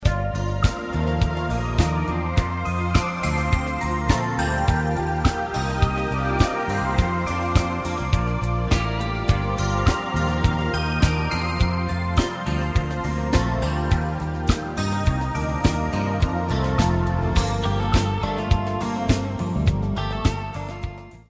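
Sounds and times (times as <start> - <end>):
basic instrumental jingle without lyrics: 0.0 - 20.9.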